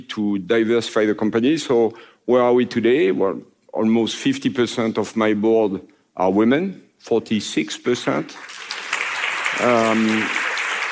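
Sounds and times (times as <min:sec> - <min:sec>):
speech: 0:00.0 - 0:08.6, 0:09.6 - 0:10.4
audience applause: 0:08.4 - 0:10.9.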